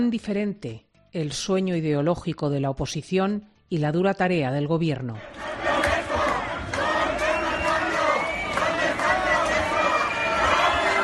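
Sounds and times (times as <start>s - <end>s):
speech: 0.0s - 5.5s
crowd of protesters chanting: 5.2s - 11.0s.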